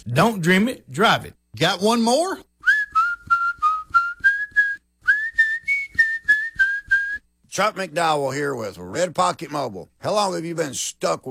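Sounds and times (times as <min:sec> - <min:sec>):
speech: 0:00.0 - 0:02.5, 0:07.6 - 0:11.2
person whistling a tune: 0:02.6 - 0:07.3.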